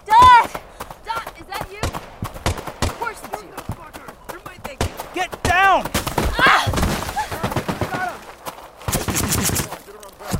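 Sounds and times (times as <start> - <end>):
voices calling out: 0.0 - 8.6
gunfire from guards shooting: 1.6 - 3.8, 4.6 - 9.8.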